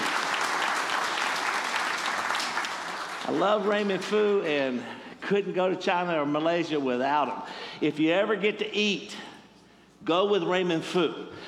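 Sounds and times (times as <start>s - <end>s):
church congregation applauding to welcome visitors: 0.0s - 4.8s
speech: 3.2s - 9.3s, 10.0s - 11.4s.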